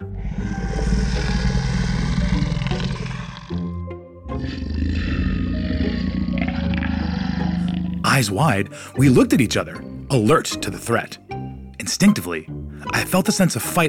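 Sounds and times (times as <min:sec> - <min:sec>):
fierce monster growl: 0:00.0 - 0:08.2
speech: 0:08.2 - 0:11.2, 0:11.8 - 0:13.8.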